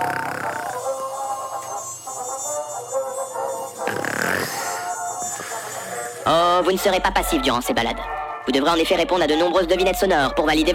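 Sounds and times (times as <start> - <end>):
mosquito whine: 0.0 - 6.4
speech: 6.3 - 10.7.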